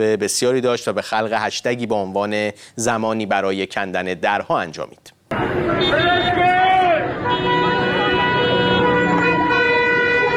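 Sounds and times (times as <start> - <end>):
speech: 0.0 - 6.4
car horns honking in street protest: 5.3 - 10.3.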